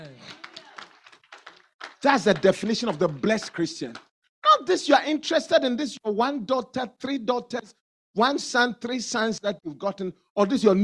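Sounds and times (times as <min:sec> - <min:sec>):
people clapping: 0:00.0 - 0:04.1
speech: 0:02.0 - 0:10.8.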